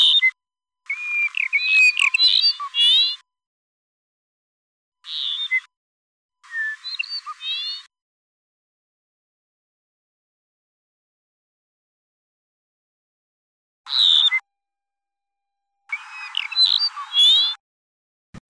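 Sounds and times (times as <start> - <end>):
song of a threatened species: 0.0 - 3.2, 5.0 - 5.7, 6.4 - 7.9, 15.9 - 17.6.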